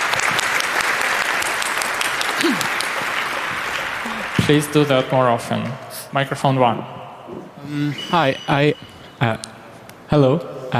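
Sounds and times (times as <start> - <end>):
audience applause: 0.0 - 5.0
speech: 4.5 - 7.0, 7.6 - 9.5, 10.1 - 10.7.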